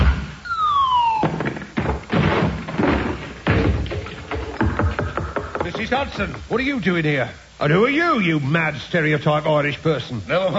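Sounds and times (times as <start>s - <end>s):
door being broken down: 1.2s - 6.0s
speech: 5.9s - 10.5s.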